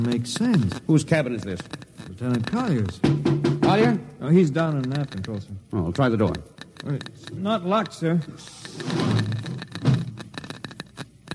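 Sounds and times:
speech: 0.0 - 9.6
Geiger counter clicking: 0.0 - 11.3.

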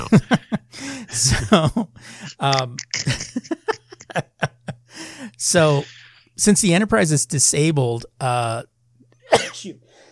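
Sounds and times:
laughter: 0.0 - 4.8
low steady hum: 0.0 - 10.0
speech: 0.1 - 0.4, 1.2 - 1.8, 2.4 - 3.3, 5.4 - 8.7
intake of breath: 0.7 - 1.1, 4.9 - 6.2
person sneezing: 9.3 - 9.7.

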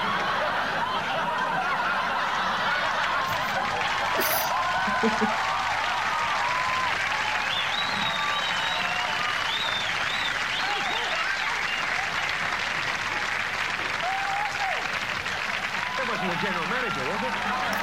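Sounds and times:
laughter: 0.0 - 5.6
crowd applause: 0.0 - 17.8
whistles: 7.4 - 11.9.

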